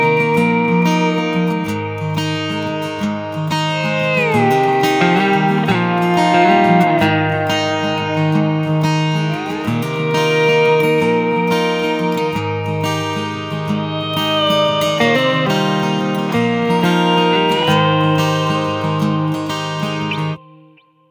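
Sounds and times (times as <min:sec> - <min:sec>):
guitars playing: 0:00.0 - 0:21.0.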